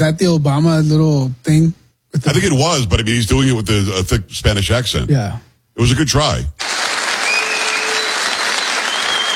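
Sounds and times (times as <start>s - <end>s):
speech: 0.0s - 6.9s
audience clapping: 6.6s - 9.3s
whistle: 7.2s - 9.3s.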